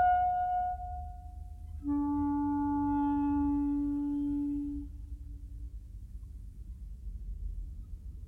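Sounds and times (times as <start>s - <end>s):
clarinet solo: 0.0s - 5.4s.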